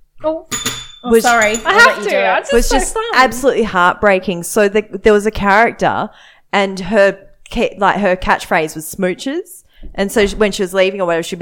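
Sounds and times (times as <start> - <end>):
speech: 0.2 - 11.4
spoiler bell ringing: 0.5 - 2.2.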